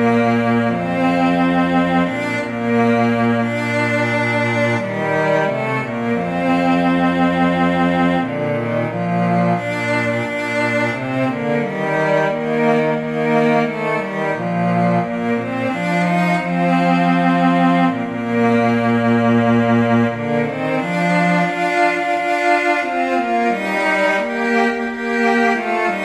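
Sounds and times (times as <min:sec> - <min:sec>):
cello duet: 0:00.0 - 0:26.0.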